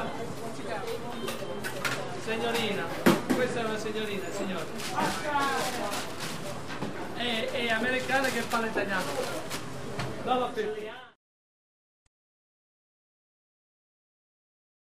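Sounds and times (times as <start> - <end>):
pizza parlor restaurant walla: 0.0 - 11.2.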